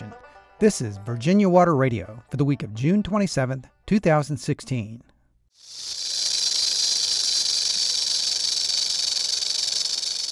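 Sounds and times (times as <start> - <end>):
speech: 0.6 - 5.1
rattlesnake rattling: 5.6 - 10.2.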